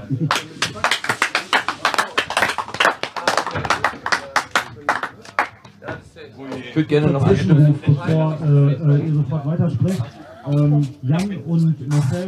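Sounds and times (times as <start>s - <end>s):
speech: 0.1s - 0.5s, 6.8s - 12.2s
applause: 0.2s - 5.6s.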